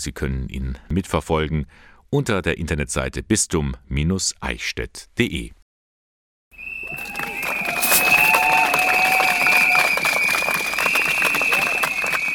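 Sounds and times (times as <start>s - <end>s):
speech: 0.0s - 5.6s
student protest crowd noise: 6.6s - 12.3s.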